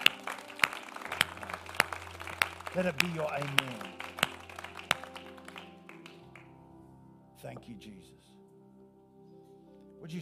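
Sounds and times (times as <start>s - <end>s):
audience applause: 0.0s - 6.5s
speech: 2.8s - 4.0s, 7.4s - 8.3s, 10.0s - 10.2s.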